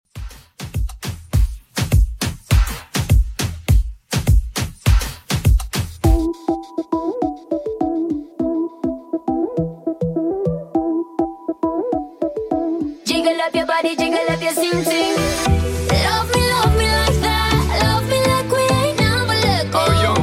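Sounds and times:
moombahton music: 0.1 - 20.2.

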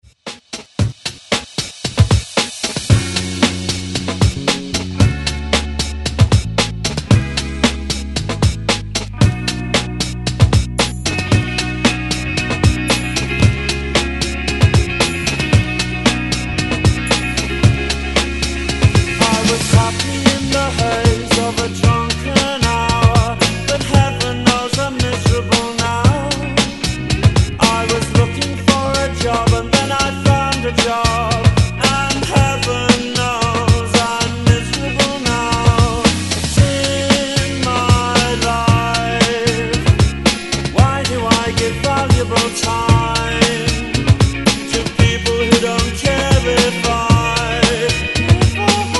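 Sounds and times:
80s style drum beat at 114 bpm: 0.0 - 48.9.

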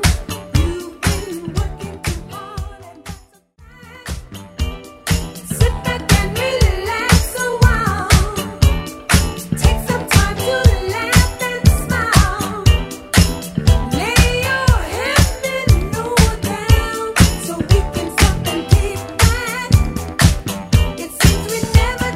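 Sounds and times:
80s drum beat: 4.7 - 22.1.

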